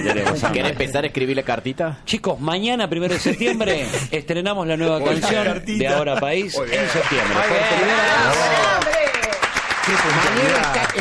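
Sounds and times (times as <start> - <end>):
laughter: 0.0 - 0.9, 3.1 - 4.1, 5.0 - 8.4
speech: 0.0 - 9.0, 9.9 - 10.9
applause: 6.7 - 10.9.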